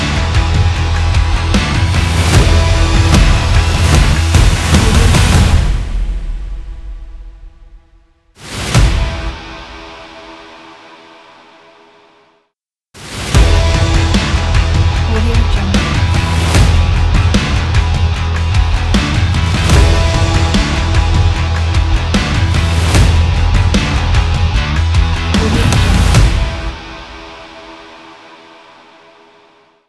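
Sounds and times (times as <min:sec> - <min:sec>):
rock drum kit: 0:00.0 - 0:06.8, 0:13.3 - 0:27.9.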